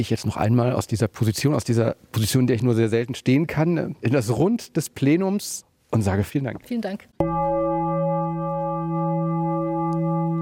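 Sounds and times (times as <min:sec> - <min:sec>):
speech: 0:00.0 - 0:07.5
parliament session gong in the Berliner Abgeordnetenhaus: 0:07.2 - 0:10.4.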